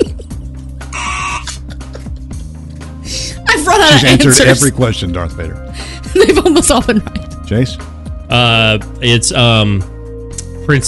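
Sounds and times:
low droning music bed: 0.0 - 10.8
quiz buzzer: 1.0 - 1.5
laughter: 3.8 - 4.8, 6.1 - 7.2
speech: 3.8 - 9.9.

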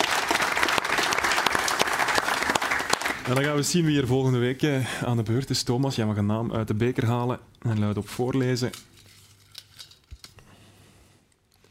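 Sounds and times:
studio audience applause: 0.0 - 3.7
speech: 3.3 - 8.9.

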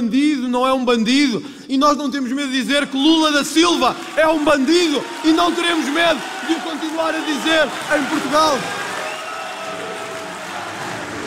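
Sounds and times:
speech: 0.0 - 8.8
audience applause: 3.5 - 11.2.

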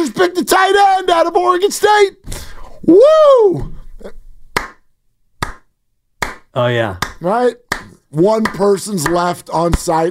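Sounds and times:
speech: 0.2 - 4.2, 6.6 - 10.1
teen-movie-style slow clap: 4.5 - 10.1.

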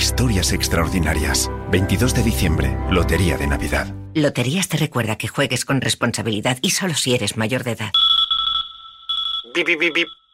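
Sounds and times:
speech: 0.1 - 8.1, 9.6 - 10.2
alarm clock beeping: 8.0 - 10.3
voice imitating alarm beeps: 9.4 - 10.2.

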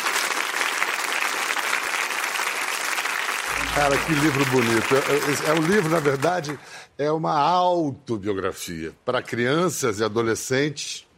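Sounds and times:
audience clapping: 0.0 - 6.8
speech: 3.8 - 11.1.

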